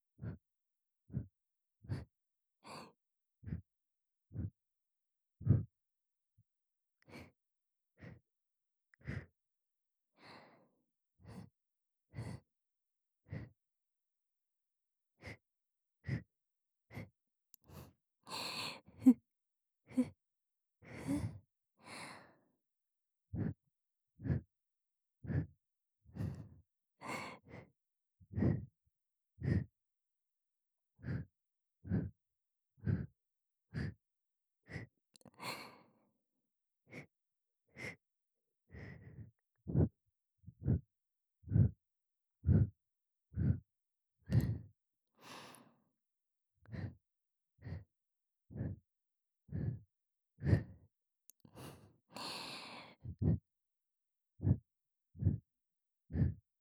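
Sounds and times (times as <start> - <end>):
continuous breathing in the left ear: 0.1 - 0.4, 1.1 - 3.7, 4.3 - 4.6, 8.9 - 9.4, 16.0 - 16.3, 16.9 - 19.2, 20.8 - 22.3, 23.3 - 23.6, 24.2 - 24.6, 25.2 - 28.7, 29.4 - 29.7, 31.0 - 32.2, 32.8 - 34.0, 34.7 - 35.9, 37.7 - 38.0, 38.7 - 43.7, 44.3 - 45.8, 46.6 - 47.0, 47.6 - 47.9, 48.5 - 48.8, 49.5 - 53.6, 54.3 - 56.5.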